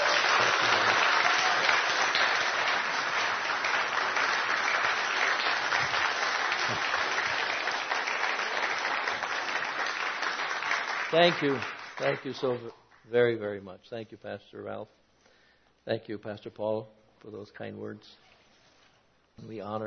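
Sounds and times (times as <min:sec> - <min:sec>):
audience applause welcoming a pastor: 0:00.0 - 0:12.6
speech: 0:11.1 - 0:15.0, 0:15.9 - 0:18.3, 0:19.4 - 0:19.8.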